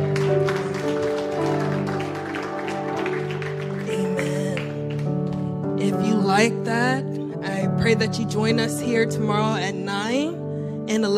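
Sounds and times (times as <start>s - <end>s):
audience clapping hands: 0.0s - 5.8s
speech: 6.4s - 7.1s, 7.8s - 11.1s.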